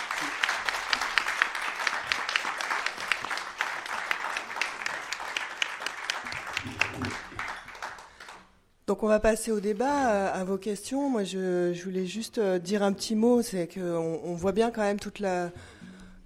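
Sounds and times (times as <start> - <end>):
audience applause: 0.0 - 8.5
speech: 8.9 - 15.7.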